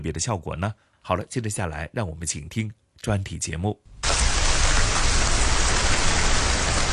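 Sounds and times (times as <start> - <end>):
speech: 0.0 - 4.0
rooftop high-pressure mist sprinklers spraying water: 4.0 - 6.9.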